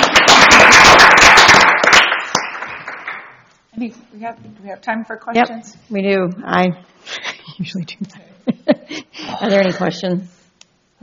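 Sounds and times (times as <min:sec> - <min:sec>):
audience applause: 0:00.0 - 0:03.4
speech: 0:03.8 - 0:10.4.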